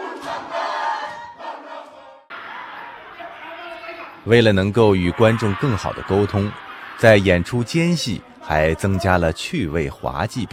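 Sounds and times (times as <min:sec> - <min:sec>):
group performing a Māori haka with shouted chanting: 0:00.0 - 0:04.2
laughter: 0:02.3 - 0:10.5
speech: 0:04.2 - 0:10.5.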